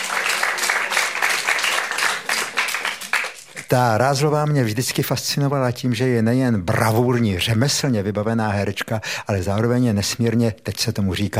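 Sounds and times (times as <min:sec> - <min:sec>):
audience applause: 0:00.0 - 0:03.7
speech: 0:03.7 - 0:11.3.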